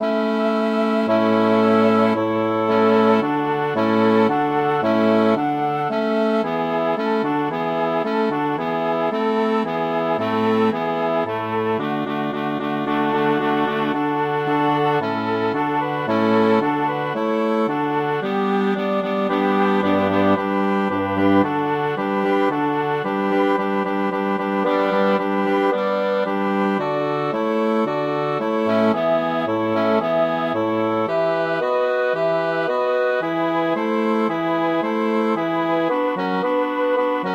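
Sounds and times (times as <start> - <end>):
woodwind quartet playing: 0.0 - 37.3.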